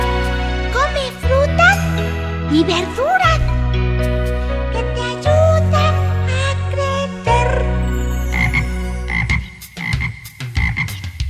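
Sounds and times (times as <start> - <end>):
steady tonal musical background: 0.0 - 11.0
frog croaking: 7.3 - 11.2.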